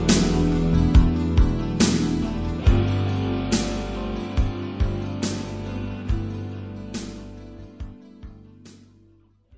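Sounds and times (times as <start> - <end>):
rock guitar: 0.0 - 8.5.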